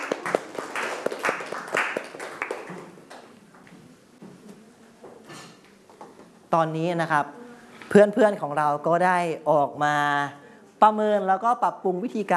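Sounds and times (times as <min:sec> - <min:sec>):
classroom clapping hands: 0:00.0 - 0:03.4
speech: 0:06.5 - 0:12.3.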